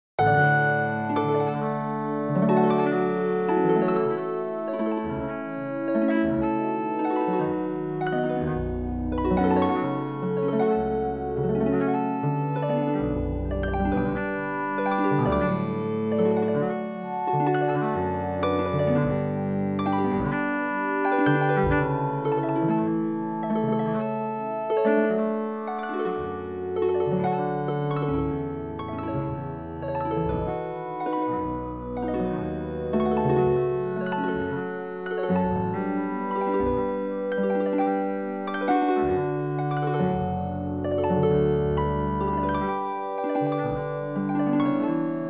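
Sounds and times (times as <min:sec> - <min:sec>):
chord progression: 0:00.2 - 0:45.2.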